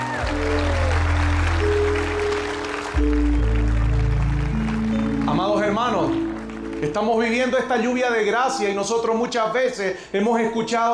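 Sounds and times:
crowd clapping: 0.0s - 8.4s
keyboard or organ chords: 0.0s - 9.8s
speech: 6.8s - 10.9s.

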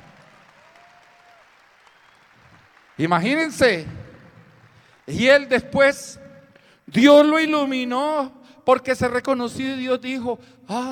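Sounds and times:
audience applause: 0.0s - 5.3s
speech: 3.0s - 4.0s, 5.1s - 6.2s, 6.9s - 10.8s.

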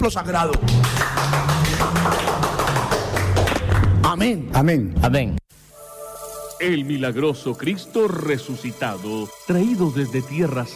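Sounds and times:
speech: 0.0s - 2.4s, 3.4s - 5.4s, 6.6s - 10.7s
audience applause: 0.6s - 3.8s.

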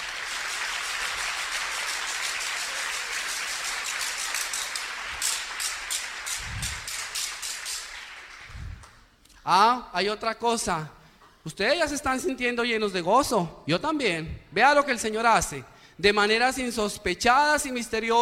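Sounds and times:
audience applause: 0.0s - 8.6s
speech: 9.5s - 18.1s.

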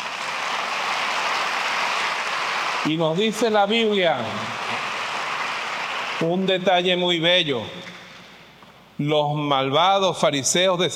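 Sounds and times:
audience applause: 0.0s - 6.4s
speech: 2.8s - 4.8s, 6.2s - 7.9s, 9.0s - 10.9s.

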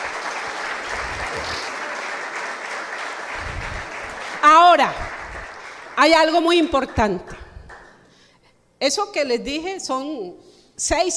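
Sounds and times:
audience applause: 0.0s - 6.4s
speech: 4.7s - 5.0s, 6.0s - 7.4s, 8.8s - 11.1s.

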